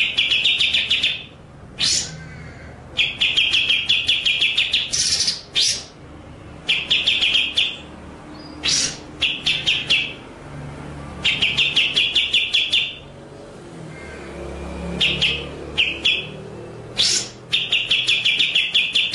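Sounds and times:
White-rumped shama song of stuttering notes and buzzy bursts: 0.0s - 2.2s, 2.9s - 6.0s, 6.6s - 10.3s, 11.2s - 13.2s, 14.9s - 19.1s.

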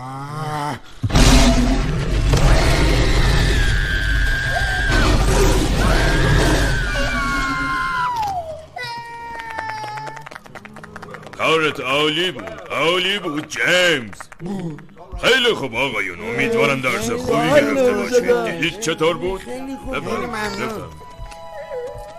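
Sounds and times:
monster roaring: 0.0s - 8.0s
speech: 11.6s - 21.0s.

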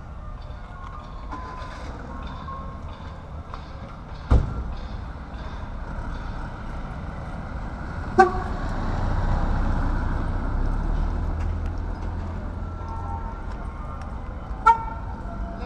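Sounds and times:
street noise: 0.0s - 15.6s
truck engine rumble: 0.0s - 15.6s
gas vendor truck horn toots: 8.1s - 8.7s, 14.6s - 15.1s.

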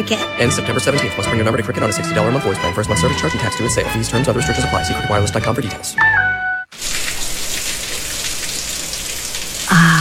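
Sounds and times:
speech: 0.0s - 6.4s
bacon sizzling and spitting in a pan: 6.7s - 9.8s.

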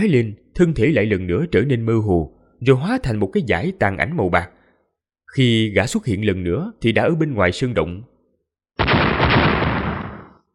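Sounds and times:
speech: 0.0s - 4.6s, 5.3s - 8.1s
rocky mountain exploding in an explosive blast: 8.8s - 10.5s.

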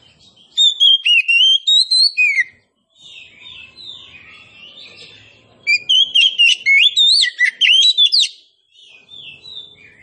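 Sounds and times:
Oriental magpie-robin singing: 0.0s - 10.0s.

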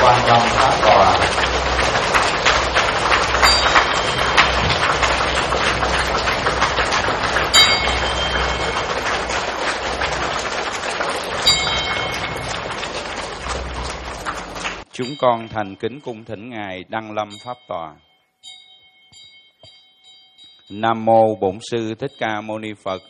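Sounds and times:
audience applause: 0.0s - 14.9s
speech: 15.0s - 18.1s, 20.7s - 23.0s.

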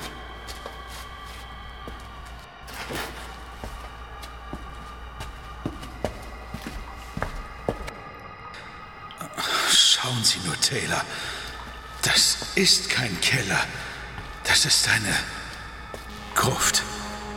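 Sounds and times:
footsteps descending a deep staircase into a crypt: 0.0s - 7.9s, 11.4s - 16.2s
constant low hum: 0.0s - 17.3s
speech: 10.2s - 11.4s, 12.2s - 13.9s, 14.5s - 15.4s, 16.4s - 16.9s.

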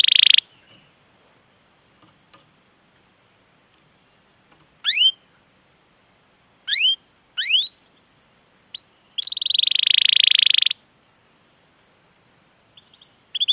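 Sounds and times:
canary lure recording of long continuous vigorous canary song: 0.0s - 0.8s, 4.8s - 5.2s, 6.7s - 8.0s, 8.8s - 10.8s, 12.8s - 13.5s.

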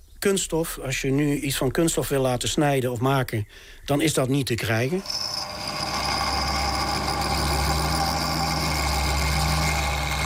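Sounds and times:
speech: 0.2s - 5.5s
milling machine running: 5.0s - 10.2s.

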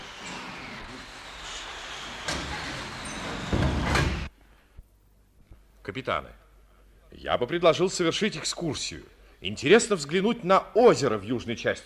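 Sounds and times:
heavy airplane door sliding and thudding shut: 0.0s - 4.3s
speech: 5.8s - 6.4s, 7.1s - 11.8s.

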